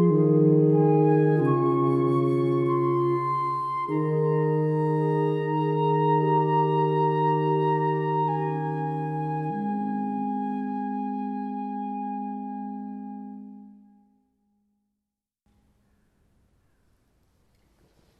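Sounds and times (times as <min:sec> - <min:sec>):
oboe: 0:00.0 - 0:14.0.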